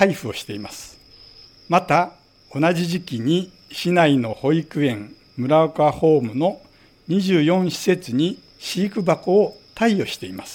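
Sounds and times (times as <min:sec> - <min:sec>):
speech: 0:00.0 - 0:01.0, 0:01.7 - 0:10.5
bell crickets (suzumushi) chirping: 0:00.0 - 0:10.5.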